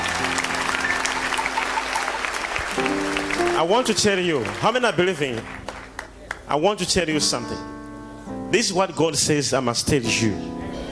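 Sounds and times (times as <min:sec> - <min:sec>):
audience clapping in praise: 0:00.0 - 0:06.6
speech: 0:03.6 - 0:05.6, 0:06.5 - 0:07.7, 0:08.5 - 0:10.6.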